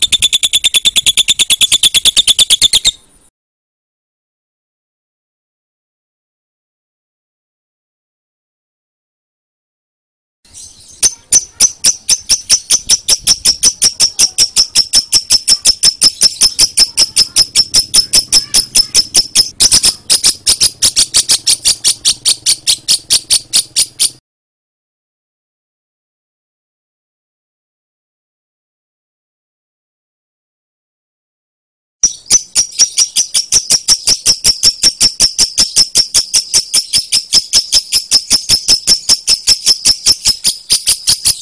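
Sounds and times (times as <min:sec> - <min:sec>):
lovebird song: 0:00.0 - 0:03.1, 0:10.5 - 0:24.2, 0:32.0 - 0:41.4.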